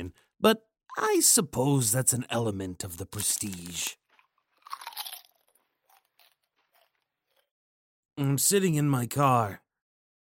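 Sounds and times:
speech: 0.4s - 4.0s, 8.2s - 9.6s
crunching kettle chips: 2.9s - 7.5s.

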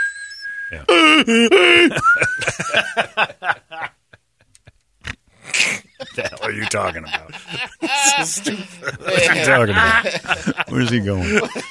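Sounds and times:
voice imitating a hearing aid's whistling with high-pitched tone and vocal squeals: 0.0s - 2.6s
speech: 0.7s - 4.0s, 5.6s - 11.6s
laughter: 0.8s - 4.8s, 5.6s - 11.6s.

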